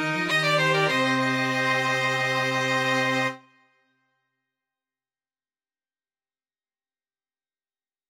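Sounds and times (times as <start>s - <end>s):
string quartet: 0.0s - 3.4s.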